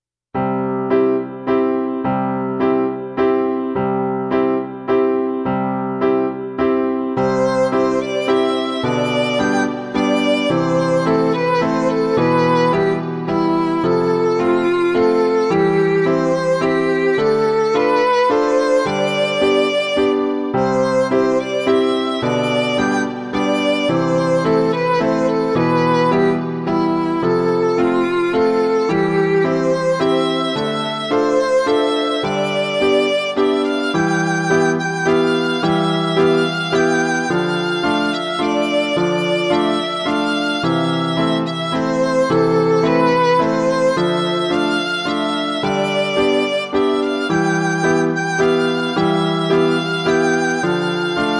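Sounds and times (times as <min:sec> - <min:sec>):
short waltz: 0:00.4 - 0:51.3.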